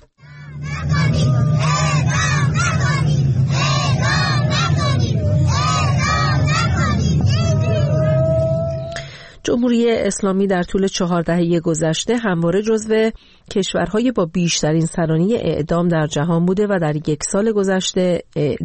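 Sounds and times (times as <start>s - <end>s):
protest crowd shouting: 0.2s - 9.0s
women crying: 7.4s - 9.1s
speech: 9.5s - 18.6s.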